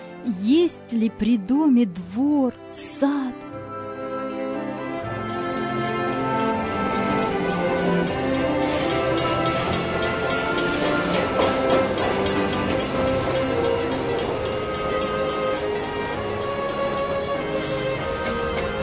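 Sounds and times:
speech: 0:00.2 - 0:03.6
train running on rails: 0:04.8 - 0:18.8.

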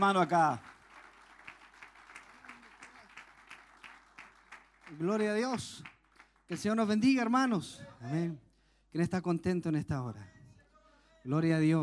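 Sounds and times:
speech: 0:00.0 - 0:00.7, 0:04.9 - 0:05.9, 0:06.5 - 0:10.4, 0:11.2 - 0:11.8
audience applauding: 0:00.0 - 0:06.8.

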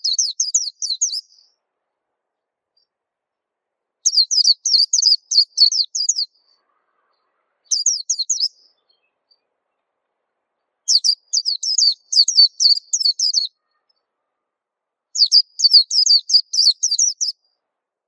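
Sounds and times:
white-eye song: 0:00.0 - 0:01.6, 0:04.1 - 0:09.5, 0:10.9 - 0:14.1, 0:15.2 - 0:17.4.

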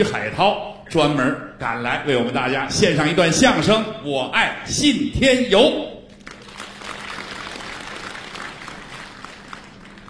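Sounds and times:
speech: 0:00.0 - 0:05.9
warm audience applause for two crosstalk comedians at a New Year comedy show: 0:06.2 - 0:10.0.

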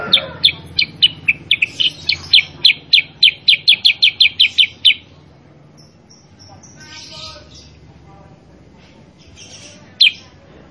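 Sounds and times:
sooty-headed bulbul chirping: 0:00.0 - 0:05.1, 0:05.8 - 0:07.8, 0:09.2 - 0:10.3
faint hissing: 0:08.7 - 0:10.4.

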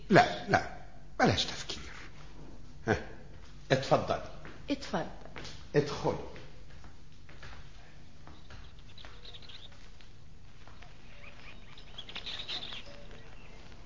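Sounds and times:
speech: 0:00.1 - 0:01.7, 0:02.9 - 0:03.1, 0:03.7 - 0:06.3
small birds chirping in a garden: 0:08.0 - 0:13.8.

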